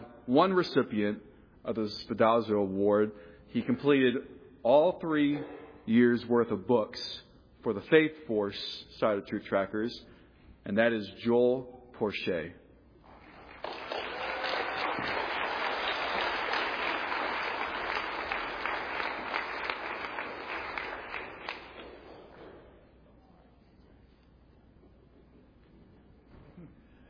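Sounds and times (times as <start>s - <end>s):
speech: 0.3s - 12.6s
audience applause: 13.1s - 22.4s.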